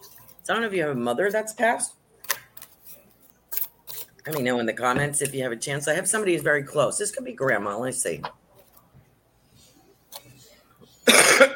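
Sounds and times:
speech: 0:00.5 - 0:02.0, 0:04.2 - 0:08.4
person coughing harshly as if choking: 0:11.0 - 0:11.5.

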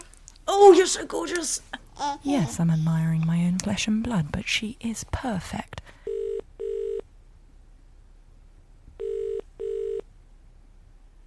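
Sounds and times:
speech: 0:00.6 - 0:05.8
telephone ringing before an answering machine picks up: 0:06.1 - 0:07.0, 0:09.0 - 0:10.0.

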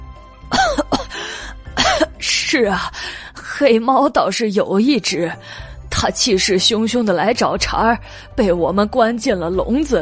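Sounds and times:
person coughing hoarsely: 0:00.5 - 0:02.2
speech: 0:02.5 - 0:10.0.

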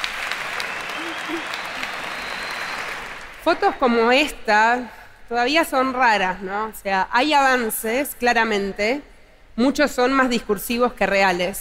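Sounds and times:
audience applause: 0:00.0 - 0:03.4
speech: 0:01.3 - 0:01.6, 0:03.4 - 0:11.5.

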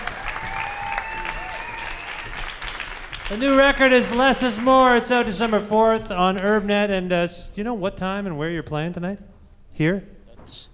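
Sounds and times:
audience applause at a live show: 0:00.0 - 0:07.0
speech: 0:03.3 - 0:10.7.

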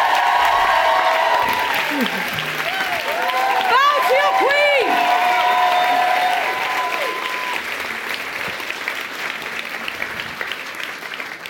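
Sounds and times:
audience cheering: 0:00.0 - 0:07.8
audience applause: 0:00.0 - 0:11.4.

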